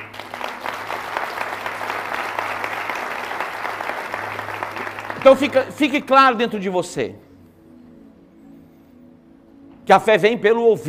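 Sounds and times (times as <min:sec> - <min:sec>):
audience applause: 0:00.0 - 0:05.8
speech: 0:05.2 - 0:07.2, 0:09.9 - 0:10.8.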